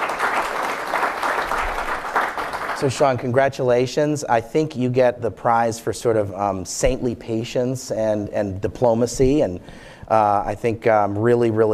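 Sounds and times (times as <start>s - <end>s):
audience applause: 0.0s - 3.2s
speech: 2.8s - 11.7s.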